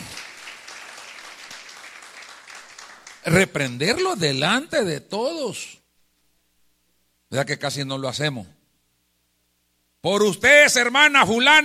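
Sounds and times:
audience applause: 0:00.0 - 0:03.4
speech: 0:03.2 - 0:05.8, 0:07.3 - 0:08.6, 0:10.0 - 0:11.6.

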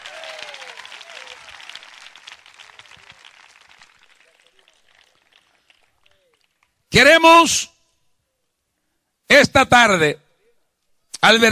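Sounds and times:
audience applauding: 0:00.0 - 0:06.8
speech: 0:07.0 - 0:07.7, 0:09.5 - 0:10.2, 0:11.2 - 0:11.5.

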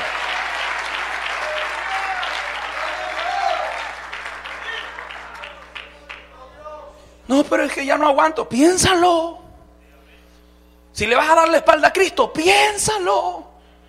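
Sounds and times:
loud applause from a large crowd: 0:00.0 - 0:06.5
speech: 0:07.3 - 0:09.4, 0:11.0 - 0:13.5.

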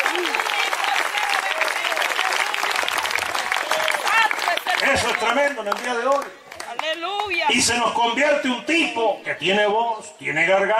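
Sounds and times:
audience applause: 0:00.0 - 0:07.5
speech: 0:05.0 - 0:06.4, 0:07.0 - 0:10.7.

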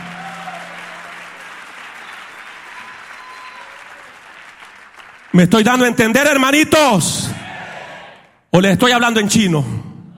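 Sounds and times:
audience applause: 0:00.0 - 0:05.5
speech: 0:05.3 - 0:07.4, 0:08.6 - 0:09.8.

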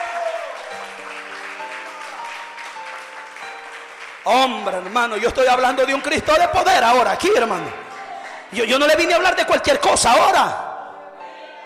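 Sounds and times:
audience applause: 0:00.0 - 0:08.8
speech: 0:04.2 - 0:07.8, 0:08.5 - 0:10.6.

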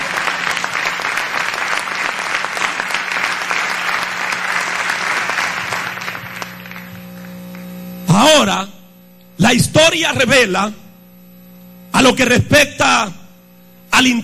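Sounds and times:
audience clapping hands: 0:00.0 - 0:07.8
speech: 0:08.4 - 0:08.7, 0:09.5 - 0:10.8, 0:12.0 - 0:13.2, 0:14.0 - 0:14.2.

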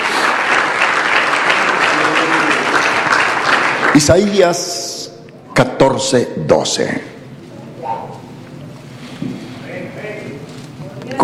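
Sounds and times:
audience applause: 0:00.0 - 0:04.7
speech: 0:04.0 - 0:04.8, 0:05.6 - 0:07.1.

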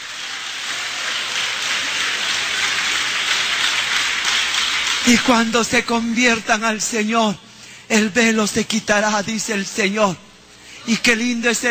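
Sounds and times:
audience applause: 0:00.0 - 0:06.0
speech: 0:05.0 - 0:11.7.

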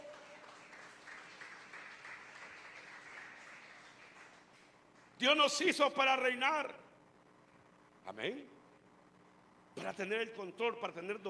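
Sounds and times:
audience clapping: 0:00.0 - 0:05.2
speech: 0:05.2 - 0:06.8, 0:08.1 - 0:08.5, 0:09.8 - 0:11.2.

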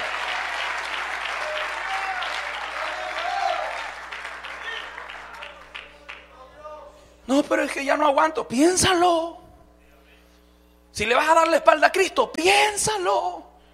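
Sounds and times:
audience applause: 0:00.0 - 0:06.2
speech: 0:07.3 - 0:09.4, 0:11.0 - 0:13.4.

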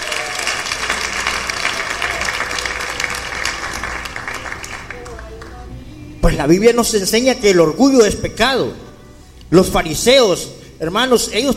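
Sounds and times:
audience clapping hands in a reverberant room: 0:00.0 - 0:05.8
speech: 0:06.3 - 0:08.8, 0:09.5 - 0:11.5.

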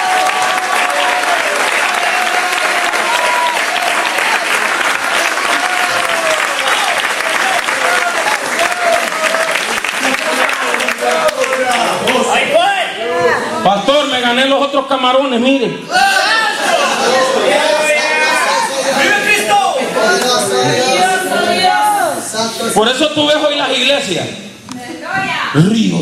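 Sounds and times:
large audience applauding: 0:00.0 - 0:12.4
people cheering: 0:00.0 - 0:13.6, 0:15.8 - 0:22.3
speech: 0:14.3 - 0:16.1, 0:22.6 - 0:24.5, 0:25.5 - 0:26.0.

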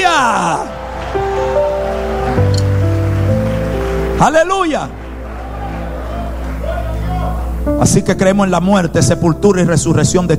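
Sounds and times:
audience applause: 0:00.1 - 0:07.7
speech: 0:04.2 - 0:05.0, 0:07.8 - 0:10.3.

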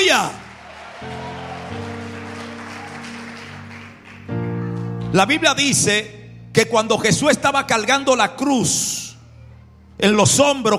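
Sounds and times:
speech: 0:00.0 - 0:00.4, 0:05.1 - 0:09.0, 0:10.0 - 0:10.7
audience applause: 0:00.0 - 0:05.1
sustained keyboard chords: 0:00.0 - 0:10.7.

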